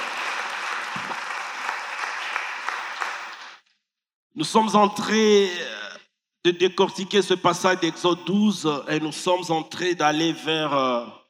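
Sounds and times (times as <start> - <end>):
congregation at a French-language church service applauding: 0.0 - 3.6
speech: 4.4 - 5.8, 6.4 - 11.2.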